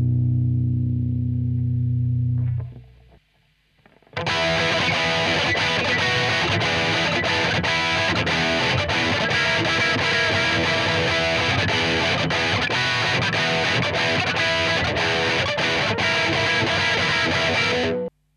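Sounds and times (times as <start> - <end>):
distorted seven-string electric guitar: 0.0 - 18.1.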